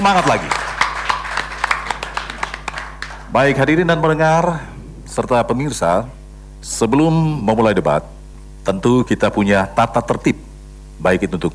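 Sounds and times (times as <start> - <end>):
speech: 0.0 - 0.7, 3.4 - 10.4, 11.0 - 11.5
audience applause: 0.0 - 3.6.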